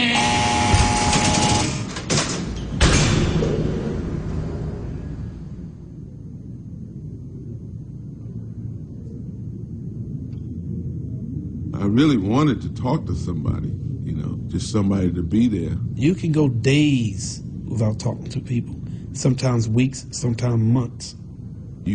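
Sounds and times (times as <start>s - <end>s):
heavy steel door on the tier opening electrically: 0.0s - 6.3s
speech: 12.0s - 21.2s.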